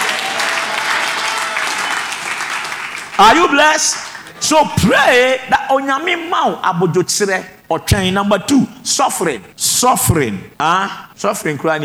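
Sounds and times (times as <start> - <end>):
audience clapping: 0.0 - 4.4
speech: 3.2 - 11.8.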